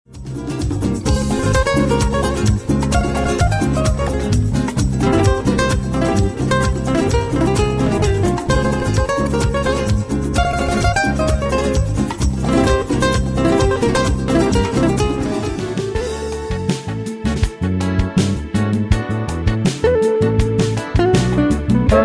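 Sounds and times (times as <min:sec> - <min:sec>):
solo guitar: 0:00.1 - 0:22.0.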